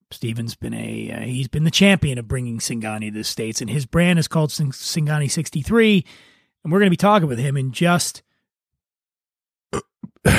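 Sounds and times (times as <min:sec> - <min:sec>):
speech: 0:00.2 - 0:08.3, 0:09.7 - 0:10.3
brief throaty sounds: 0:09.7 - 0:10.3
loud low rumbling burp: 0:09.7 - 0:10.3.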